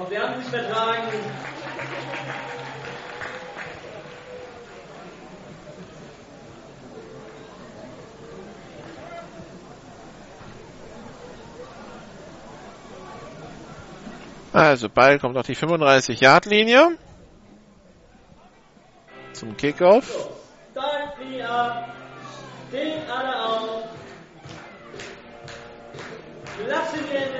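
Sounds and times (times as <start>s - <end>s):
speech: 0.0s - 3.4s, 14.6s - 17.0s, 19.4s - 20.4s, 21.2s - 22.0s, 22.7s - 23.8s, 26.6s - 27.3s
audience applause: 0.4s - 9.8s, 24.0s - 27.3s.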